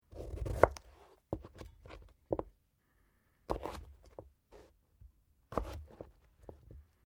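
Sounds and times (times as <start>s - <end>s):
carrot being cut: 0.1s - 2.1s, 3.5s - 4.7s, 5.5s - 6.1s.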